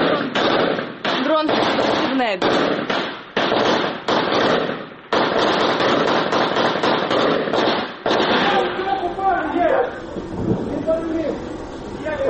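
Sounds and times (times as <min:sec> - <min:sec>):
gunfire bursts: 0:00.0 - 0:12.0
speech: 0:02.2 - 0:03.0
raised voices shouting: 0:08.1 - 0:12.2.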